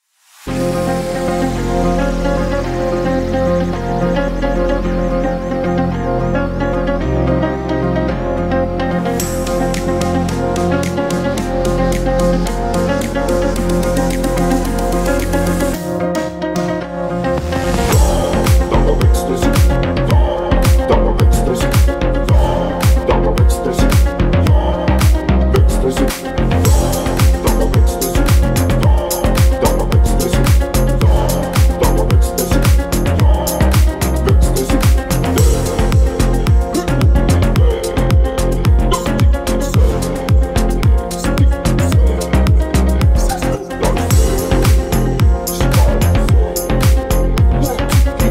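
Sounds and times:
remix music: 0:00.4 - 0:48.2.

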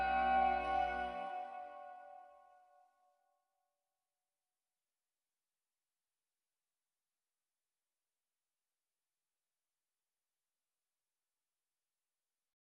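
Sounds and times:
slowed reverb music: 0:00.0 - 0:02.2.

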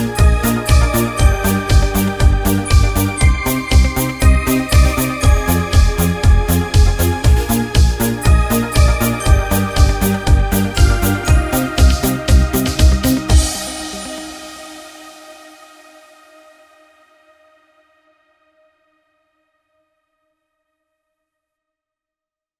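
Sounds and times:
1980s style instrumental music on a Korg Pa5x keyboard: 0:00.0 - 0:15.6.

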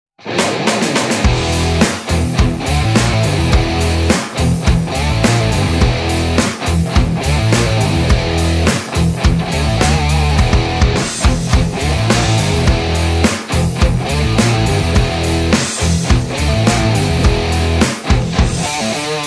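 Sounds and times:
metal cover song: 0:00.2 - 0:19.2.

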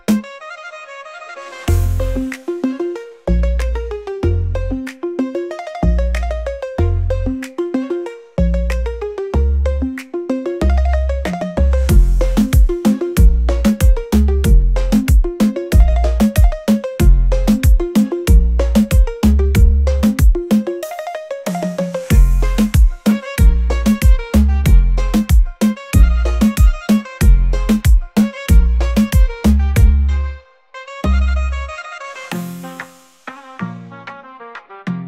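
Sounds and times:
reggaeton bass: 0:00.0 - 0:00.5, 0:01.6 - 0:35.0.

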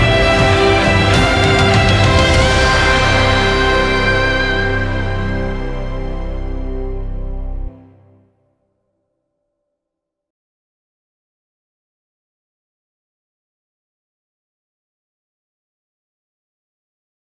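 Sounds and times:
epic version anthem music: 0:00.0 - 0:08.4.

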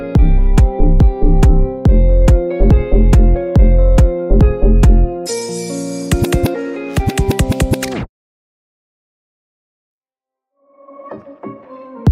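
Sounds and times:
instrumental backing track: 0:00.0 - 0:08.1.

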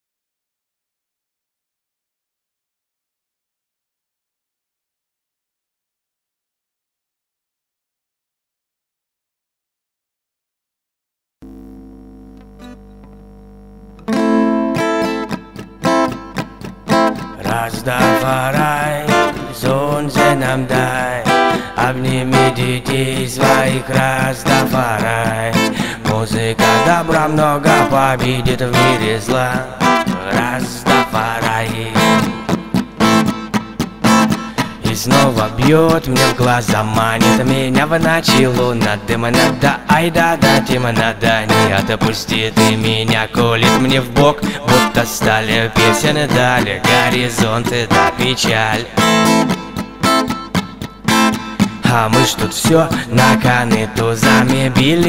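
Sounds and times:
acoustic music: 0:11.4 - 0:55.0.

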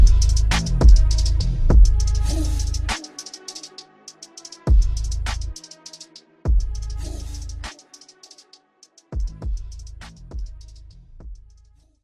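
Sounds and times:
slowed bass-boosted music: 0:00.0 - 0:03.0, 0:04.7 - 0:05.6, 0:06.5 - 0:07.7, 0:09.2 - 0:11.8.

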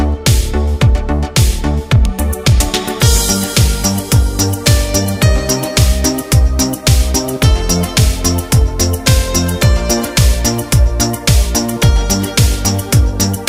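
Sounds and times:
relaxing instrumental music in Korg Pa4X style: 0:00.0 - 0:13.4.

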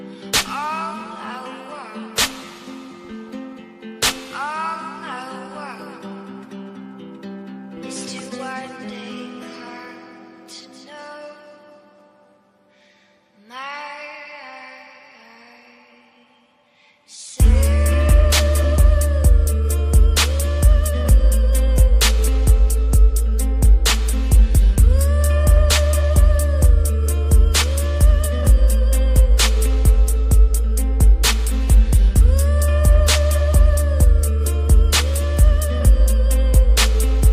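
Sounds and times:
bass boosted music: 0:17.4 - 0:37.3.

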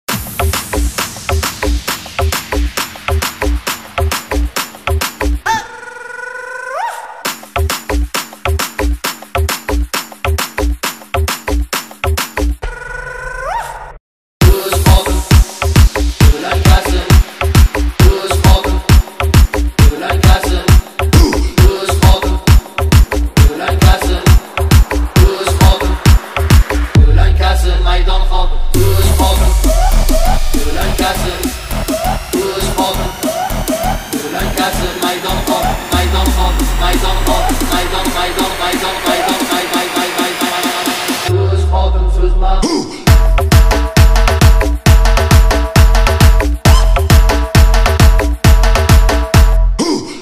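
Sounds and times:
phonk remix: 0:00.1 - 0:13.0, 0:14.4 - 0:50.2.

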